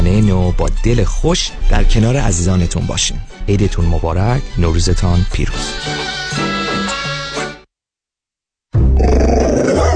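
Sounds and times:
speech: 0:00.1 - 0:06.5
pit bull growling: 0:09.0 - 0:09.9.

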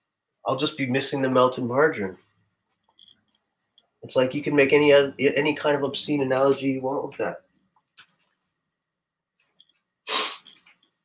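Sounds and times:
speech: 0:00.5 - 0:02.2, 0:04.0 - 0:07.5
person sniffling from a cold: 0:10.1 - 0:10.6.

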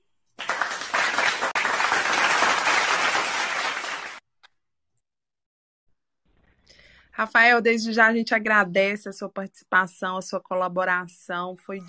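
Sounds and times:
applause: 0:00.4 - 0:04.2
speech: 0:07.2 - 0:11.8.

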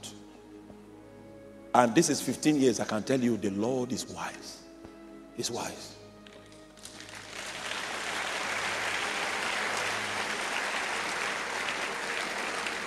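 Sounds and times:
speech: 0:01.8 - 0:04.6, 0:05.4 - 0:06.0
audience clapping: 0:06.2 - 0:12.8.

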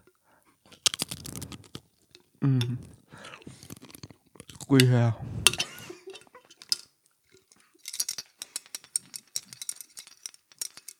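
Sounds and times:
person biting into Pringles potato chips: 0:00.7 - 0:02.0, 0:02.8 - 0:04.8
speech: 0:02.4 - 0:02.9, 0:04.7 - 0:05.4.

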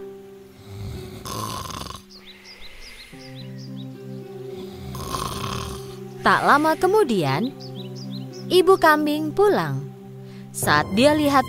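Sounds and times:
wolf snoring while asleep: 0:00.5 - 0:03.4, 0:04.5 - 0:07.1
faint bird chirps: 0:01.8 - 0:04.8, 0:05.8 - 0:10.5
speech: 0:06.2 - 0:07.6, 0:08.5 - 0:09.9, 0:10.6 - 0:11.4.

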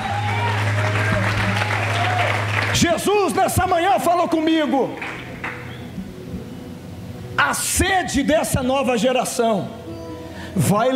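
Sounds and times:
audience applauding: 0:00.0 - 0:03.6, 0:05.0 - 0:05.8
low musical drone: 0:00.0 - 0:10.9
speech: 0:02.8 - 0:05.1, 0:07.4 - 0:09.9, 0:10.6 - 0:10.9.

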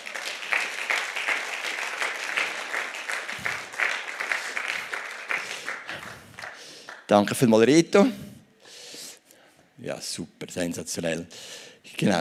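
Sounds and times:
audience applause: 0:00.0 - 0:07.1
speech: 0:07.1 - 0:08.2, 0:09.9 - 0:12.1.

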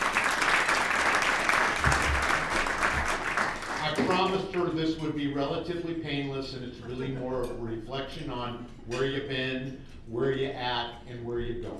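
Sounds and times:
round of applause: 0:00.0 - 0:04.3
speech: 0:04.2 - 0:11.7.

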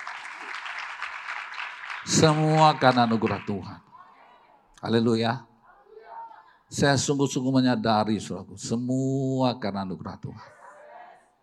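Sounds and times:
audience applause: 0:00.0 - 0:03.8
speech: 0:02.0 - 0:03.8, 0:04.8 - 0:05.5, 0:06.7 - 0:10.6.

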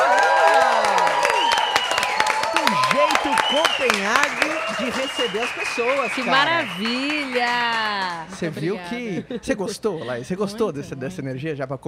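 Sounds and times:
cheering: 0:00.0 - 0:08.4
applause: 0:00.0 - 0:08.7
speech: 0:03.5 - 0:11.8.

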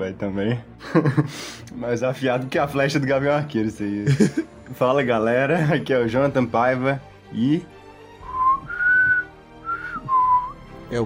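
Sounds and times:
speech: 0:00.0 - 0:07.8
laughter: 0:00.8 - 0:01.4, 0:04.0 - 0:04.8
person whistling a tune: 0:08.2 - 0:10.6.

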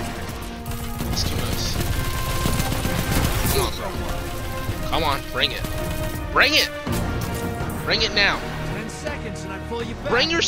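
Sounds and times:
rapid gunfire in the video game Destiny 2: 0:00.0 - 0:08.6
speech: 0:04.9 - 0:06.8, 0:07.9 - 0:08.5, 0:09.3 - 0:10.4.

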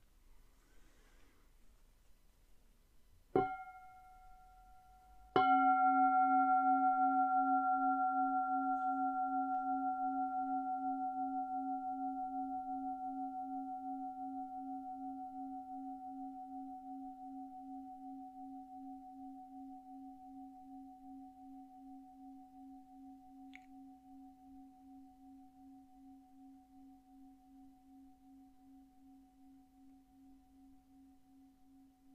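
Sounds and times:
meditation bell ringing: 0:03.4 - 0:23.0.

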